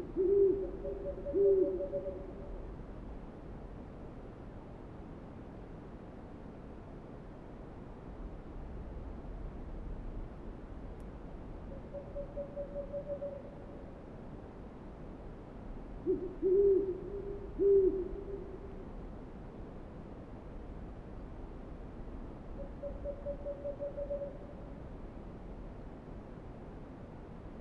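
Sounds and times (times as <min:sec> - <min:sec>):
owl hooting: 0:00.0 - 0:02.4, 0:11.7 - 0:13.6, 0:16.0 - 0:18.6, 0:22.6 - 0:24.4.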